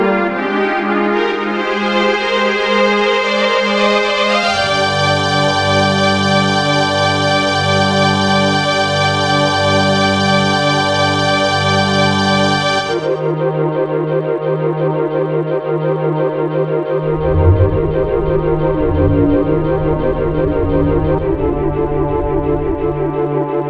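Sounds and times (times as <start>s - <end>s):
mellow ambient music: 0.0s - 23.6s.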